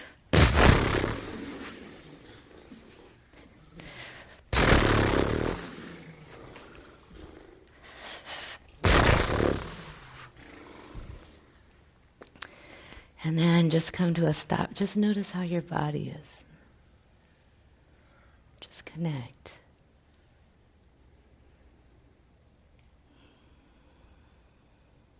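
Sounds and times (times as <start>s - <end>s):
person imitating a horse snorting: 0.4s - 3.2s, 4.5s - 7.6s, 8.8s - 11.2s
quiet breathing noise: 1.6s - 4.5s, 5.6s - 8.8s, 9.7s - 13.2s, 16.3s - 18.6s, 19.5s - 25.1s
speech: 13.3s - 16.4s, 19.0s - 19.4s.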